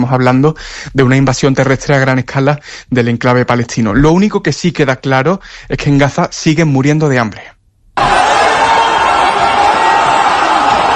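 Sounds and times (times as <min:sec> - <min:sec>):
speech: 0:00.0 - 0:08.2
crowd din in food aid queues of the Gaza Humanitarian Foundation: 0:08.0 - 0:10.9.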